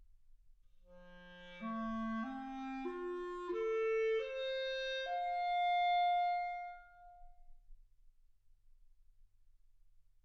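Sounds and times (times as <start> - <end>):
clarinet: 0.9 - 7.5.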